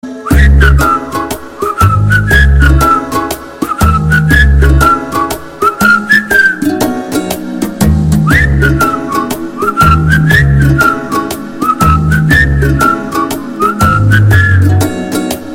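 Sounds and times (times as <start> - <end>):
background music: 0.0 - 15.5.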